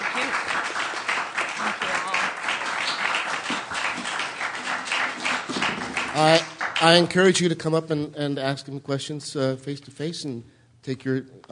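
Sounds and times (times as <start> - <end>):
audience round of applause: 0.0 - 7.2
speech: 6.2 - 11.5.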